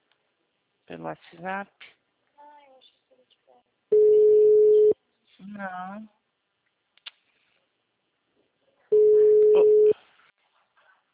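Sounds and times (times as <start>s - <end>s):
speech: 0.9s - 2.0s, 5.4s - 6.2s
telephone busy signal: 3.9s - 5.0s, 9.0s - 9.9s.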